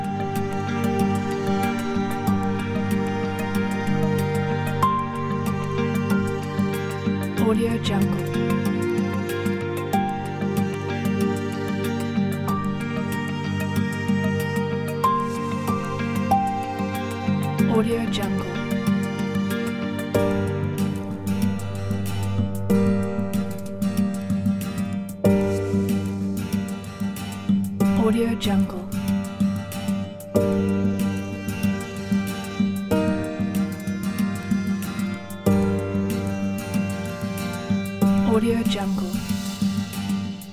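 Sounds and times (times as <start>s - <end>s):
soundscape movie guitars: 0.0s - 40.5s.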